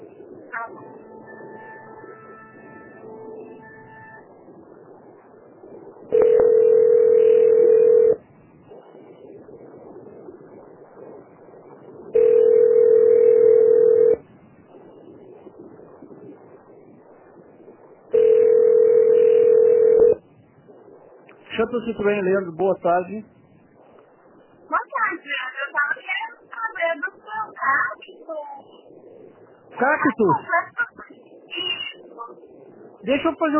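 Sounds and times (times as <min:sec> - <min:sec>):
low line hiss and hum: 0:00.0 - 0:33.5
telephone ringback tone while a call is transferred: 0:06.1 - 0:08.2, 0:12.2 - 0:14.2, 0:18.1 - 0:20.2
speech: 0:21.6 - 0:23.4, 0:29.8 - 0:30.6, 0:33.1 - 0:33.5.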